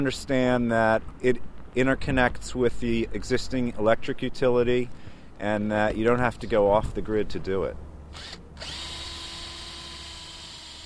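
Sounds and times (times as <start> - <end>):
speech: 0.0 - 8.8
power drill installing a solar roof: 8.1 - 10.8.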